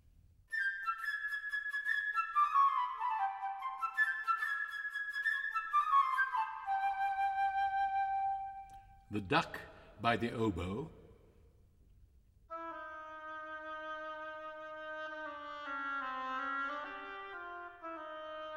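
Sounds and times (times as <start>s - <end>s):
solo flute melody: 0.5s - 9.0s, 12.5s - 18.5s
speech: 9.1s - 11.0s.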